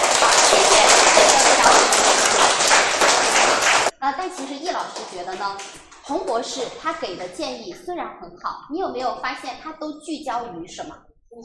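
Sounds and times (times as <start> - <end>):
audience applause: 0.0 - 6.6
speech: 4.9 - 11.4.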